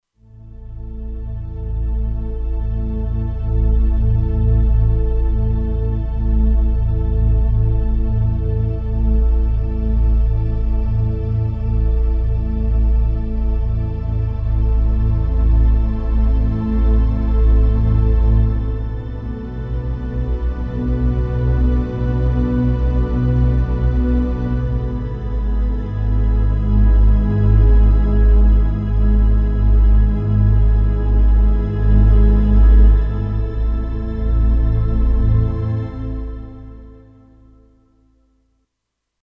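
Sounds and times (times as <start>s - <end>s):
Kurzweil K2500X synthesizer: 0.2s - 38.3s.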